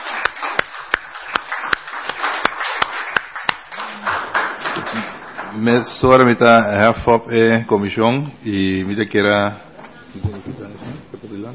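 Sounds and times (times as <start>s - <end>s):
audience applause: 0.0s - 5.9s
speech: 5.6s - 10.3s.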